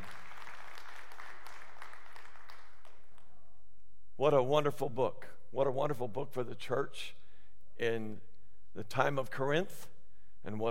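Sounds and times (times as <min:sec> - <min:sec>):
audience clapping: 0:00.0 - 0:03.4
speech: 0:04.2 - 0:07.2, 0:07.8 - 0:10.6.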